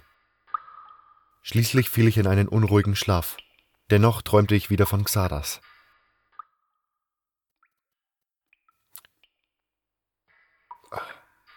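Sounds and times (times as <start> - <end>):
water drops splashing onto a person's face: 0.5 - 5.2
speech: 1.5 - 5.7.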